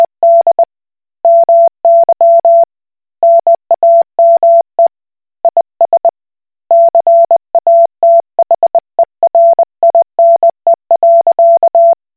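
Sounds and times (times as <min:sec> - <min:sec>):
Koch Morse code beeps: 0:00.0 - 0:00.7, 0:01.3 - 0:04.6, 0:06.7 - 0:12.0.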